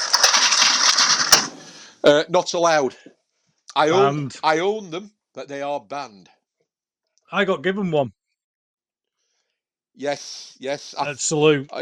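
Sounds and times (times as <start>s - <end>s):
dice rattling inside a box: 0.0s - 1.5s
laughter: 1.6s - 3.0s, 3.7s - 6.2s, 10.0s - 11.8s
speech: 2.1s - 6.4s, 7.3s - 8.2s, 10.0s - 11.8s.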